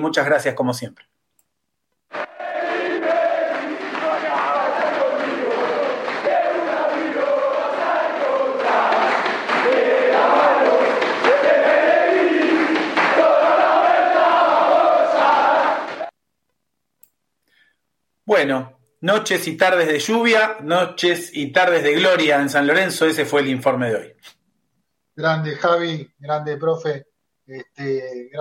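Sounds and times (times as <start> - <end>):
speech: 0.0 - 1.2, 18.3 - 24.4, 25.2 - 28.3
players chanting and cheering in celebration in locker room: 2.1 - 16.1
shouts: 2.2 - 16.1.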